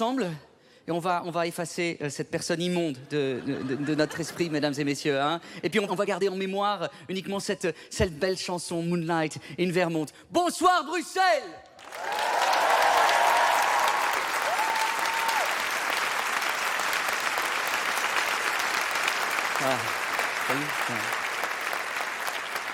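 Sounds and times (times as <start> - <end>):
speech: 0.0 - 12.4, 20.5 - 21.2
audience applause: 11.8 - 22.7
whistles and cheers: 11.9 - 15.8.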